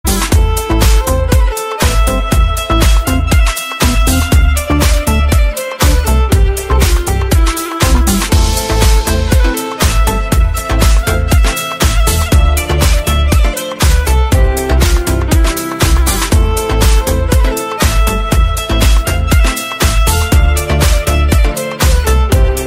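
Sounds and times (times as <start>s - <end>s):
violin: 0.1s - 22.6s.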